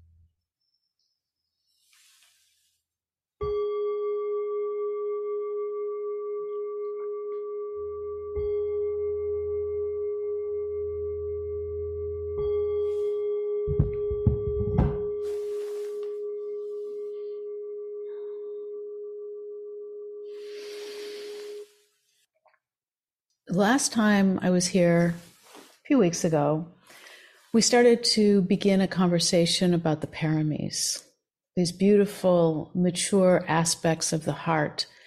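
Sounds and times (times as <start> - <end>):
meditation bell ringing: 3.4 - 21.7
speech: 23.7 - 25.3, 26.0 - 26.8, 27.6 - 35.0.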